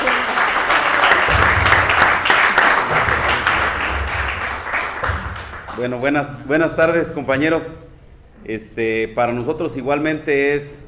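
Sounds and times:
audience applause welcoming a speaker at a conference on alternative education: 0.0s - 6.1s
speech: 5.8s - 10.8s.

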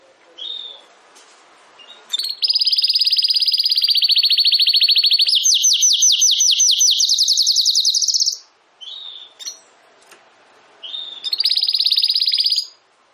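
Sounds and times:
domestic canary rolling trill: 1.8s - 9.7s, 10.8s - 12.8s.

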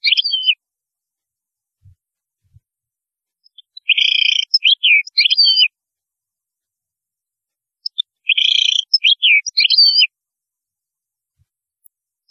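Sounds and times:
European goldfinch song of trills and twitters: 0.0s - 0.6s, 3.4s - 5.7s, 7.8s - 10.1s.

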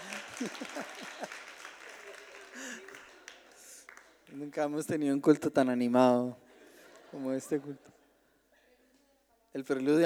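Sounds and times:
laughter: 0.0s - 4.2s, 6.5s - 8.3s
church congregation applause during a Sunday service: 0.0s - 4.9s
speech: 0.4s - 1.4s, 4.4s - 6.4s, 7.1s - 8.0s, 9.5s - 10.0s.

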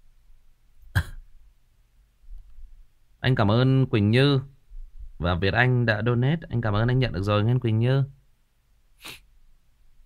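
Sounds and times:
person coughing: 0.9s - 1.3s
speech: 3.2s - 4.5s, 5.2s - 8.2s, 9.0s - 9.2s.

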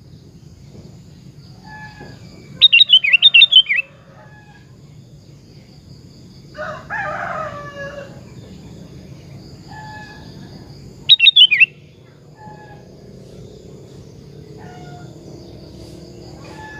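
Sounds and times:
sooty-headed bulbul singing bubbling phrases: 1.6s - 3.9s, 9.8s - 12.9s.

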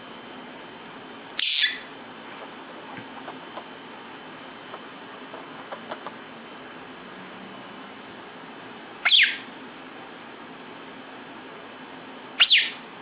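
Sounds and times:
lovebird giving shrill sharp chirps: 1.4s - 1.9s, 9.0s - 9.4s, 12.4s - 12.8s.

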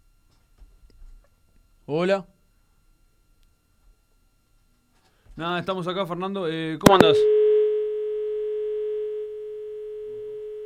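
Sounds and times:
speech: 1.9s - 2.3s, 5.4s - 7.4s
mobile telephone busy tone after a dropped call: 6.9s - 10.6s.

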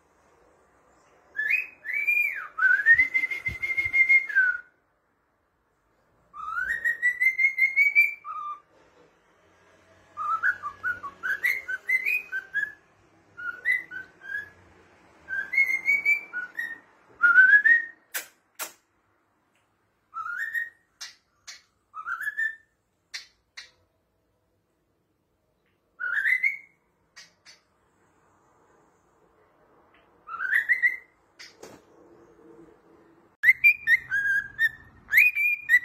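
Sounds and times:
cockatiel whistling: 1.3s - 4.7s, 6.3s - 8.7s, 10.2s - 12.8s, 13.4s - 14.6s, 15.3s - 18.3s, 20.1s - 23.8s, 26.0s - 27.6s, 30.2s - 31.5s, 33.4s - 35.8s.

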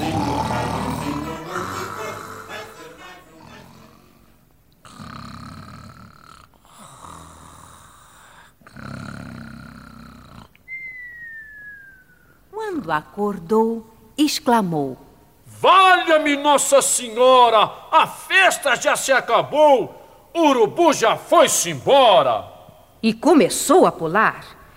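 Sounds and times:
human voice imitating a frog snoring: 0.0s - 2.8s, 3.4s - 10.6s
music: 0.0s - 4.4s
thin whistle: 10.6s - 12.5s
speech: 12.9s - 15.0s, 15.6s - 24.6s.

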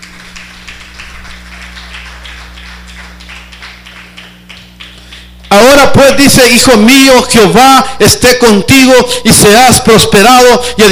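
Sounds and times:
audience clapping hands: 0.0s - 5.9s
speech: 5.5s - 10.8s.

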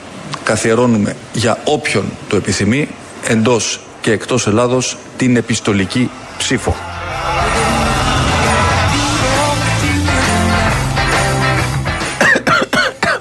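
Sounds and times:
speech: 0.5s - 6.9s
loud dense wash of noise: 4.3s - 11.0s
person coughing: 12.2s - 13.2s.

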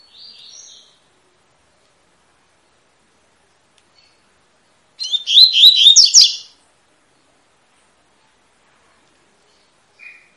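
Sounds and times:
double-collared seedeater singing: 5.0s - 6.5s.

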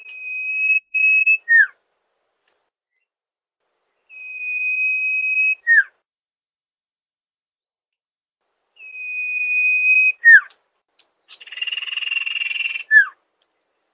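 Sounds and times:
bird song used for training songbirds: 0.0s - 1.8s, 3.9s - 6.0s, 8.8s - 10.6s, 11.2s - 13.9s.

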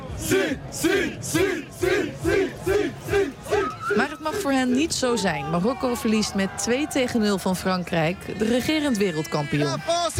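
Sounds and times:
football fans cheering for Morocco: 0.0s - 10.1s
speech: 0.2s - 3.0s, 4.3s - 10.1s.

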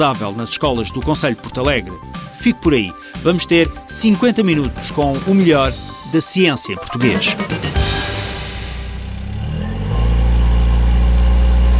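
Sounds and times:
speech: 0.0s - 7.8s
car engine climbing the Serra da Freita from Arouca: 8.8s - 11.7s.

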